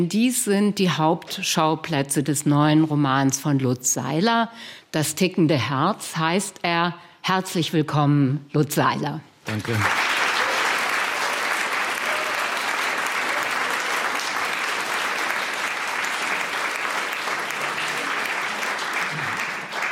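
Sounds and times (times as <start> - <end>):
speech: 0.0 - 10.1
audience applause at a literary event at the Literarisches Kolloquium: 9.5 - 19.9.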